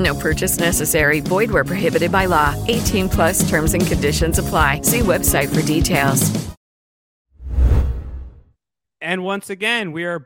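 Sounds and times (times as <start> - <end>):
speech: 0.0 - 6.5, 9.0 - 10.2
whoosh transition sound effect: 7.4 - 8.5.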